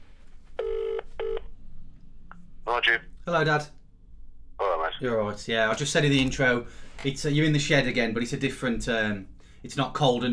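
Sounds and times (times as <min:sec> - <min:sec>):
faint low hum: 0:00.0 - 0:10.3
phone call electronic ring tone: 0:00.6 - 0:01.4
speech: 0:02.7 - 0:03.8, 0:05.0 - 0:10.3.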